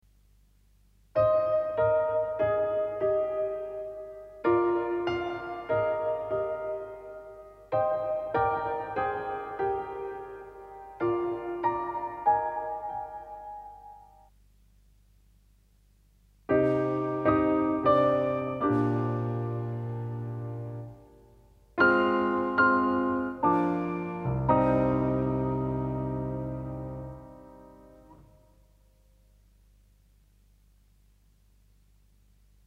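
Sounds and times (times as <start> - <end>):
piano: 1.2 - 14.3, 16.4 - 28.8.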